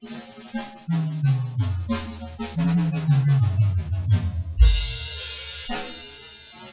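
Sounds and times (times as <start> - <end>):
drum solo: 0.9 - 6.2.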